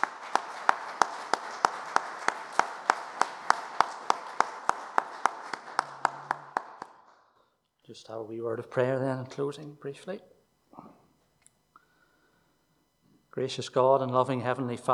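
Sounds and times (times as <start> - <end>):
audience applause: 0.0 - 7.3
speech: 7.9 - 10.3, 13.4 - 14.9.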